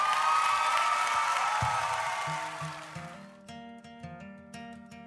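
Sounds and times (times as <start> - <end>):
clapping and cheering: 0.0 - 3.3.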